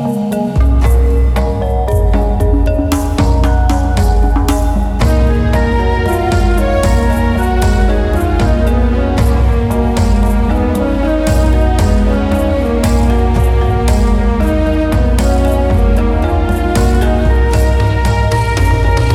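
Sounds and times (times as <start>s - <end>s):
exterior music loop: 0.0s - 19.1s.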